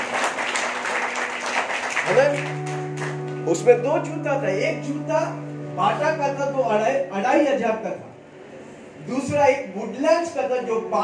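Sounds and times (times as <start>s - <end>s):
audience applause: 0.0s - 3.2s
speech: 2.1s - 2.7s, 3.4s - 8.1s, 9.0s - 11.0s.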